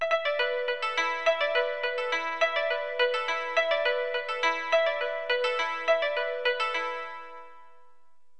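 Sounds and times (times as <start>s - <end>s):
koto: 0.0s - 7.7s.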